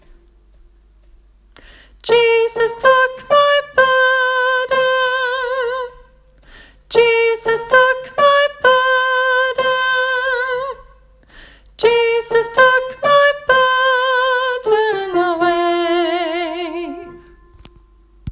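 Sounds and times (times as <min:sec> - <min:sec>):
soprano singing: 0:02.0 - 0:06.1, 0:06.9 - 0:11.0, 0:11.8 - 0:17.8.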